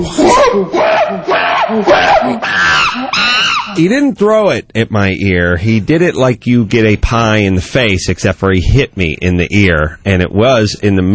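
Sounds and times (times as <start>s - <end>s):
monkey sound effect: 0.0s - 3.9s
speech: 0.0s - 11.1s.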